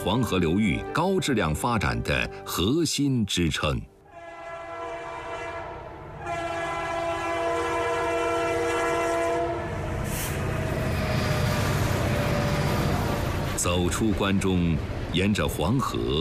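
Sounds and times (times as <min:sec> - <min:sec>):
speech: 0:00.0 - 0:03.9, 0:13.8 - 0:16.2
train running on railway: 0:04.0 - 0:16.2.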